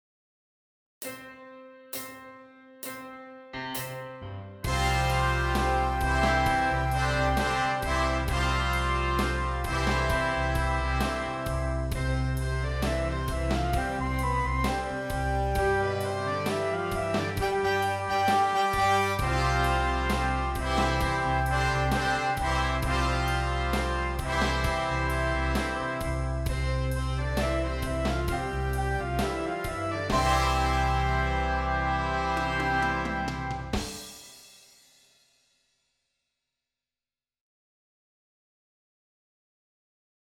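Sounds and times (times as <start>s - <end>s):
horns in fifths: 4.7s - 34.2s.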